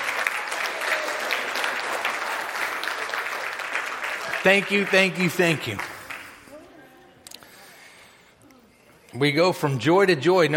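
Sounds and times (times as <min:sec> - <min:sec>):
crowd applause: 0:00.0 - 0:06.6
speech: 0:04.4 - 0:05.9, 0:09.2 - 0:10.5.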